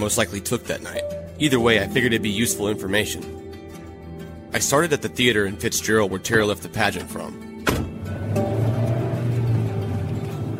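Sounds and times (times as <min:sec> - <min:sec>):
speech: 0:00.0 - 0:03.5, 0:04.5 - 0:07.5
car engine hum while driving: 0:07.7 - 0:10.5
road noise: 0:07.7 - 0:10.5.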